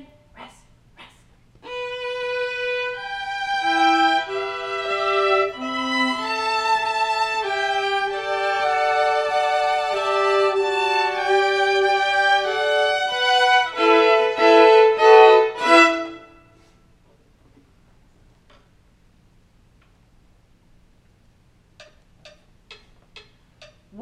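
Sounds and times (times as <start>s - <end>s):
first and second violas playing: 1.7s - 16.7s.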